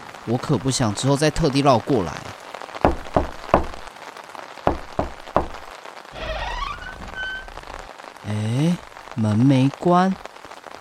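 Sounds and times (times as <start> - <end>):
heavy rain: 0.0 - 10.8
speech: 0.2 - 2.3, 8.7 - 10.2
dull thumps: 2.9 - 3.9, 4.7 - 5.7.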